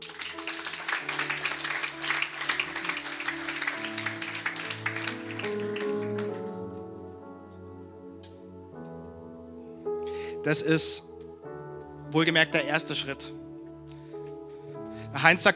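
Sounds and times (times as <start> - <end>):
crowd applauding: 0.0 - 6.8
speech: 10.4 - 11.2, 12.1 - 13.4, 15.2 - 15.5.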